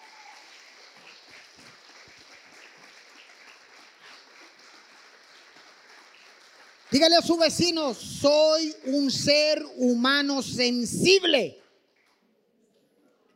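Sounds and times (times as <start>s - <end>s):
audience applause: 0.0s - 7.6s
speech: 6.9s - 11.6s.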